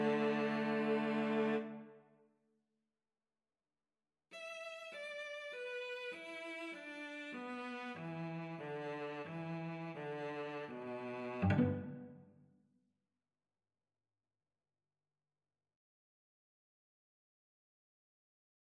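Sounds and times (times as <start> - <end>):
cello duet: 0.0 - 1.8, 6.2 - 12.2.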